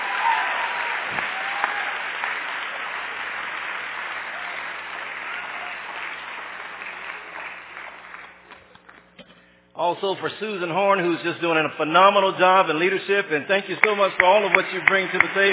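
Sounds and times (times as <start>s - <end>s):
audience applause for cheer dancers: 0.0s - 9.0s, 13.8s - 15.5s
speech: 9.8s - 15.5s.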